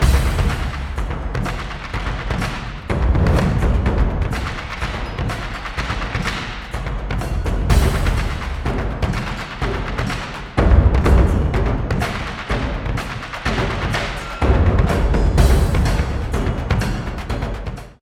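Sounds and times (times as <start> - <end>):
combat drums: 0.0 - 18.0.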